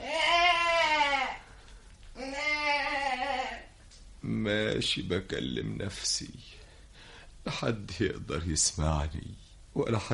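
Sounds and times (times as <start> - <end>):
young goat kid bleating: 0.0 - 1.5, 2.2 - 3.7
speech: 4.4 - 6.6, 7.5 - 10.1.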